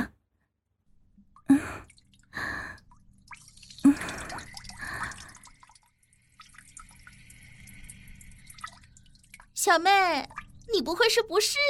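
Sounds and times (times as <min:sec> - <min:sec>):
quieter steady trickling: 0:01.0 - 0:11.6
intermittent urine stream into toilet: 0:01.9 - 0:11.0
speech: 0:09.6 - 0:11.6.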